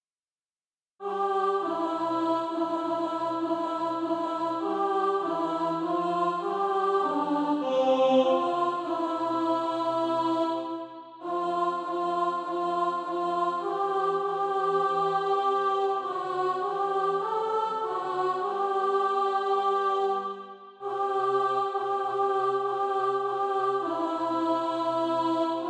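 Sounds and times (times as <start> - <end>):
alto voice singing practice music: 1.0 - 25.6.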